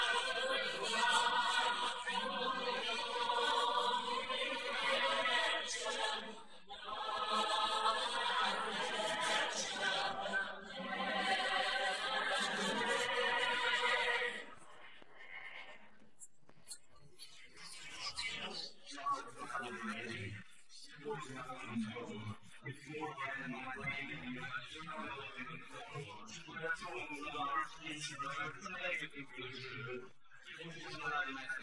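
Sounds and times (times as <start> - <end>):
laughter: 0.0 - 14.4
noise: 0.0 - 31.6
vocals: 0.0 - 31.6.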